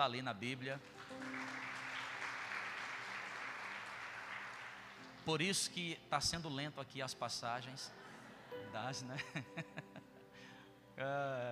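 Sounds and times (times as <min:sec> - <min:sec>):
speech: 0:00.0 - 0:01.3, 0:05.2 - 0:09.9, 0:11.0 - 0:11.5
crowd applause: 0:00.8 - 0:05.3
laughter: 0:07.9 - 0:10.2.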